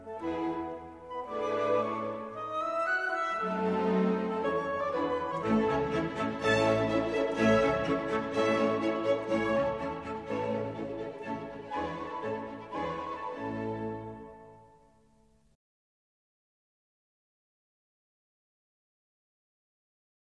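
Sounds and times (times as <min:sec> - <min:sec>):
piano concerto in A major: 0:00.0 - 0:15.0.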